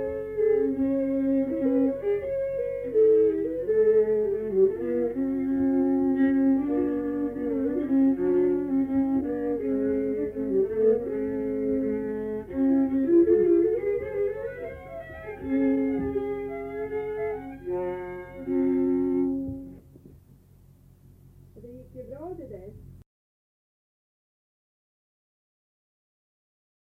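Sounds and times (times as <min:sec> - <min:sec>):
wedding march music: 0:00.0 - 0:19.9.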